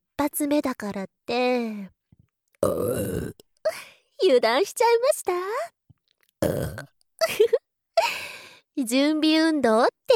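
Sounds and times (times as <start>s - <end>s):
speech: 0.3s - 2.0s, 2.6s - 5.8s, 6.4s - 10.1s
low rasping burps: 2.6s - 3.4s, 6.4s - 6.9s.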